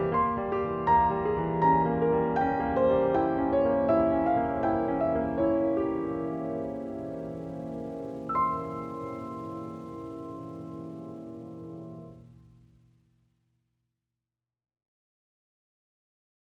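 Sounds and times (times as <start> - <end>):
piano: 0.0 - 12.5.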